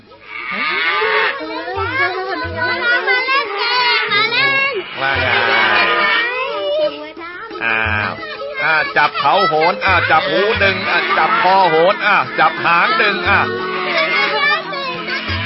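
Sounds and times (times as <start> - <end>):
children's voices: 0.0 - 15.4
black cow mooing while walking around a village: 0.2 - 1.5, 4.8 - 6.3, 9.8 - 15.4
laughter: 7.6 - 15.4
speech: 8.9 - 13.7.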